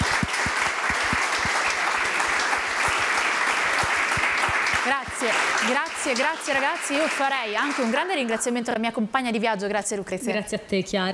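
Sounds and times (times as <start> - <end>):
audience applause: 0.0 - 8.1
speech: 4.9 - 11.1.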